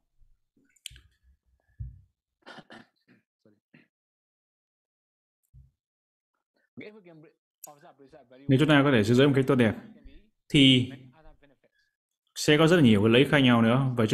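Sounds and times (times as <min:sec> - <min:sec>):
coughing: 0:02.4 - 0:03.9
speech: 0:06.8 - 0:11.1, 0:12.4 - 0:14.1.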